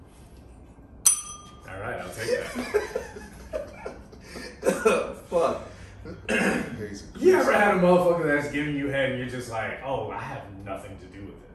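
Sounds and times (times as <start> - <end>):
bell being rung: 1.1 - 1.7
speech: 1.7 - 3.3, 6.9 - 11.5
laughter: 2.0 - 6.3.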